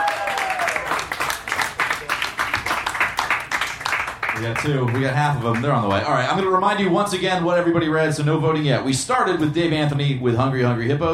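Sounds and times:
audience applause: 0.0s - 5.9s
speech: 4.4s - 11.1s.

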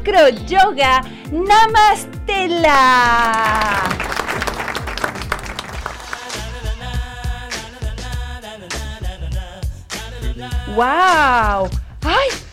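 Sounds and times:
speech: 0.0s - 4.1s, 10.7s - 12.4s
loud audience applause: 3.2s - 6.8s.

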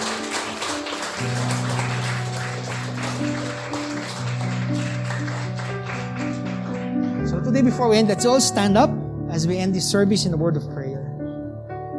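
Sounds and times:
audience applause: 0.0s - 7.4s
speech: 7.6s - 10.9s.

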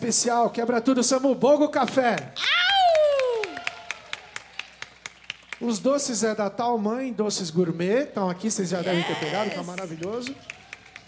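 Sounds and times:
speech: 0.0s - 2.8s, 5.6s - 10.6s
whooping cheer: 2.4s - 5.0s, 8.9s - 11.0s
rhythmic hand claps: 2.9s - 6.0s, 9.2s - 11.0s.

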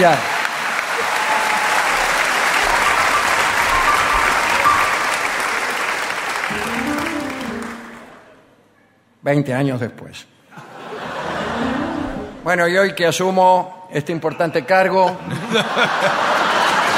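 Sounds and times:
speech: 0.0s - 0.3s, 9.2s - 10.4s, 12.4s - 16.3s
audience applause: 0.0s - 8.3s, 15.7s - 16.9s
laughter: 10.6s - 12.4s, 15.1s - 16.9s.

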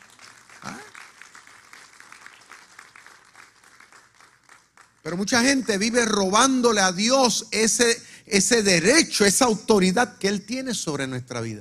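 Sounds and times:
audience applause: 0.0s - 5.2s
speech: 5.0s - 11.5s.

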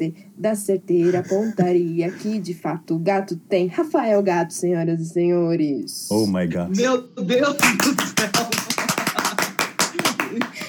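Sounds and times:
speech: 0.0s - 8.6s
person clapping hands: 7.5s - 10.6s.

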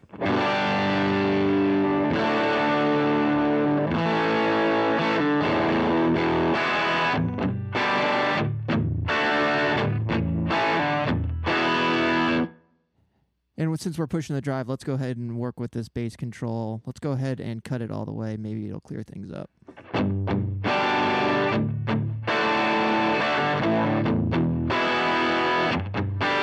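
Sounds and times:
heavily overdriven electric guitar playing chords: 0.0s - 12.6s, 19.7s - 26.4s
speech: 13.8s - 20.4s.

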